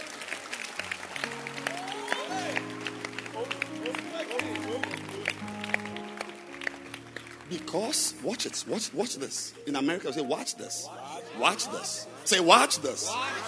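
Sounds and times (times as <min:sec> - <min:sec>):
church congregation clapping for the pastor: 0:00.0 - 0:09.6
speech: 0:07.5 - 0:13.4.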